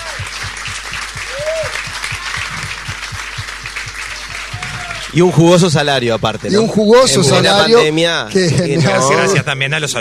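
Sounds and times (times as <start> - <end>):
audience applause: 0.0 - 7.1
speech: 5.1 - 9.9.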